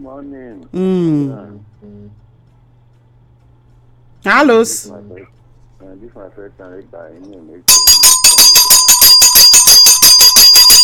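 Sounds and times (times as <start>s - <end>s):
speech: 0.0s - 2.3s, 4.2s - 8.7s
Wazobia Bell sound effect ringing: 7.7s - 10.8s.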